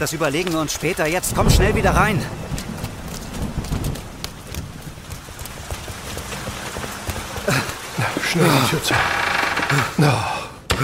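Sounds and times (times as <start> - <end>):
speech: 0.0 - 2.6, 8.3 - 10.8
heavy rain during a storm: 0.0 - 10.8.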